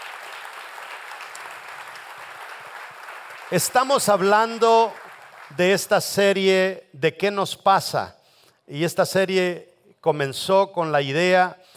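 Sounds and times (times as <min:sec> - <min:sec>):
audience applause: 0:00.0 - 0:05.6
speech: 0:03.5 - 0:11.7.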